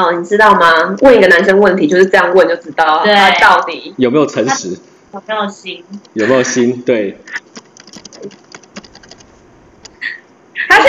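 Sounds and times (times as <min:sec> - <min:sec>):
speech: 0:00.0 - 0:07.4, 0:08.2 - 0:08.4
typing on a computer keyboard: 0:07.3 - 0:10.0.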